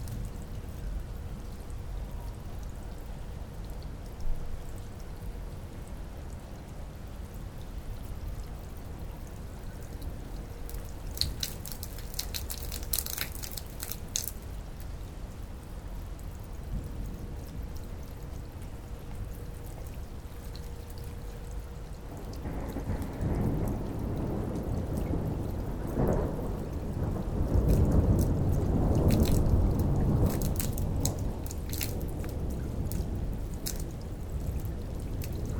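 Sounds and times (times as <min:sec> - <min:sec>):
water from drainpipe: 0:00.0 - 0:35.5
distant thunder: 0:22.1 - 0:35.5
severe hail storm: 0:22.4 - 0:33.9.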